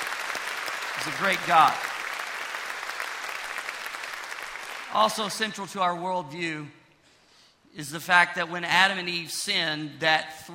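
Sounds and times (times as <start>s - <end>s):
audience applause: 0.0s - 5.2s
speech: 1.0s - 1.9s, 4.9s - 6.8s, 7.7s - 10.5s.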